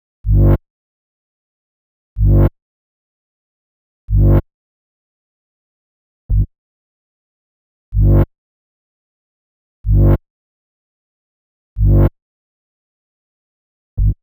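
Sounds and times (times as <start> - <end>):
bass in G: 0.2 - 0.6, 2.2 - 2.5, 4.1 - 4.4, 6.3 - 6.5, 7.9 - 8.3, 9.8 - 10.2, 11.8 - 12.1, 14.0 - 14.2.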